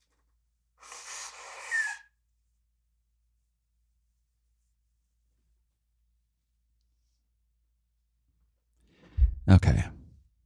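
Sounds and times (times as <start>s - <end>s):
person blowing nose: 0.8s - 2.1s
speech: 9.5s - 10.0s.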